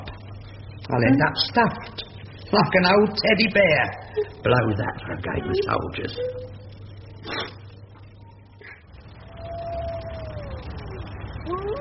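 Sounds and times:
speech: 0.9 - 6.6
wolves howling: 9.1 - 11.7.

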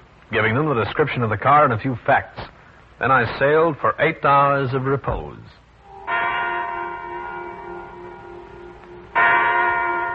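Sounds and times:
speech: 0.3 - 5.6
big clock chiming nine o'clock: 5.8 - 10.1.

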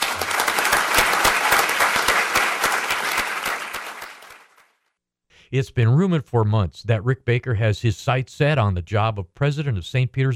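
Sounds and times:
audience applause: 0.0 - 4.8
speech: 5.5 - 10.3.

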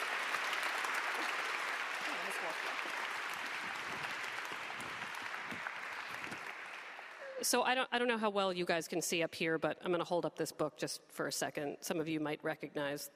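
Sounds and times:
applause from a sizable crowd: 0.0 - 7.4
speech: 7.4 - 13.1.

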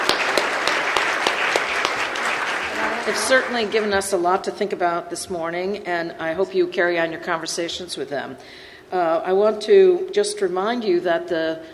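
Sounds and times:
audience applause at a colloquium for the speakers and panel respondents: 0.0 - 4.2
speech: 3.1 - 11.7.

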